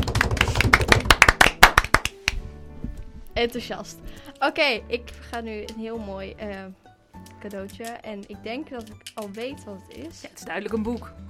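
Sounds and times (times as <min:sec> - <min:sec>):
applause from a small group: 0:00.0 - 0:02.4
speech: 0:03.4 - 0:06.8, 0:07.4 - 0:11.2.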